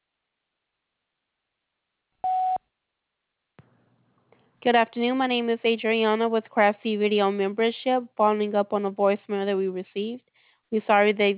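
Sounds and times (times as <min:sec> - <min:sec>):
voicemail beep: 0:02.2 - 0:02.6
speech: 0:04.6 - 0:11.3.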